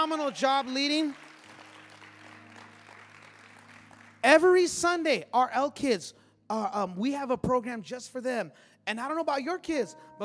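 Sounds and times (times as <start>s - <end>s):
speech: 0.0s - 1.3s, 4.2s - 10.2s
audience applauding: 0.0s - 4.5s.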